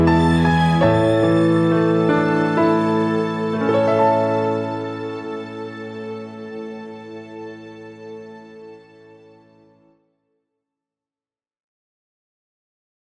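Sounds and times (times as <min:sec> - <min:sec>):
piano note A: 0:00.0 - 0:08.0.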